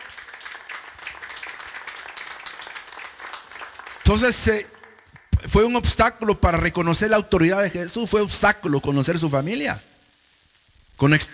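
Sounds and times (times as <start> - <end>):
people clapping: 0.0 - 6.9
speech: 4.1 - 4.7, 5.4 - 9.9, 11.0 - 11.3.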